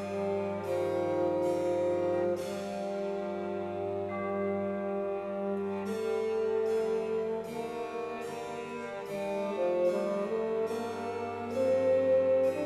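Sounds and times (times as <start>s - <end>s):
bassoon: 0.0s - 12.6s
tubular bells: 0.0s - 12.6s
violoncello: 0.0s - 12.6s.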